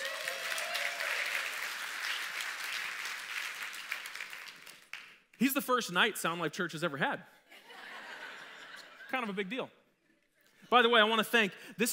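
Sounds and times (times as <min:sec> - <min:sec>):
applause: 0:00.0 - 0:05.3
speech: 0:05.4 - 0:07.4, 0:09.1 - 0:09.8, 0:10.7 - 0:11.9.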